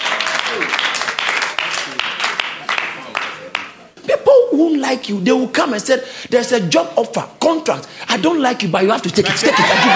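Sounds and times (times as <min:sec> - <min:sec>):
sisters clapping: 0:00.0 - 0:03.8
speech: 0:04.6 - 0:09.9
laughter: 0:09.1 - 0:09.9.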